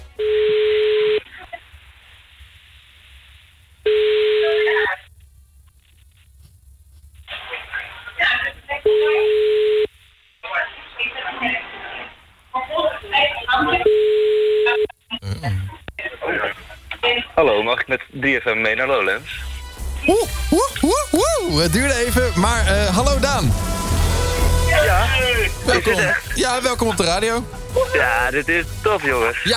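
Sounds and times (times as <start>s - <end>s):
outgoing phone call ringback tone: 0.2s - 1.2s, 3.9s - 4.8s, 13.8s - 14.9s
voices: 7.2s - 9.3s, 10.4s - 13.9s, 15.1s - 23.5s, 24.6s - 29.5s
speech: 17.6s - 23.7s, 24.8s - 29.5s.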